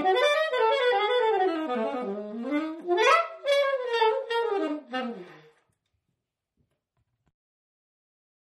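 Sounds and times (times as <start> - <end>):
alto saxophone: 0.0 - 5.8.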